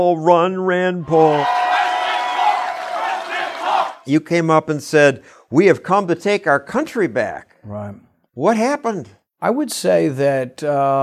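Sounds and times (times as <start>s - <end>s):
speech: 0.0s - 1.6s, 4.0s - 11.0s
large rally crowd roaring and cheering: 1.0s - 4.1s.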